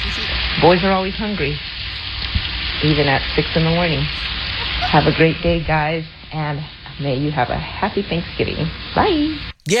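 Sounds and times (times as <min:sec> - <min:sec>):
bacon sizzling in a frying pan: 0:00.0 - 0:06.8
speech: 0:00.2 - 0:01.7, 0:02.8 - 0:09.7.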